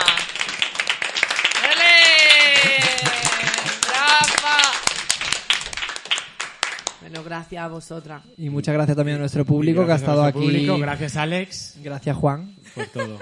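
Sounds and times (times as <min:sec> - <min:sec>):
applause: 0:00.0 - 0:07.3
laughter: 0:01.7 - 0:04.6, 0:12.6 - 0:13.2
speech: 0:07.2 - 0:13.2.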